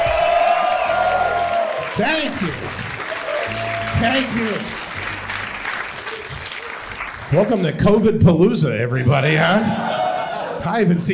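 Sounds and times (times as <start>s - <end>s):
New York City comedy audience cheering and applauding: 0.0s - 8.0s
speech: 2.0s - 2.8s, 4.0s - 4.8s, 7.3s - 10.0s, 10.6s - 11.1s.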